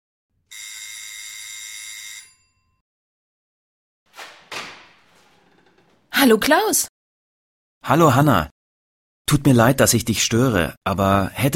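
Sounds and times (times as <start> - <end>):
doorbell ringing: 0.5 - 2.8
speech: 6.2 - 6.9, 7.9 - 8.6, 9.3 - 11.5.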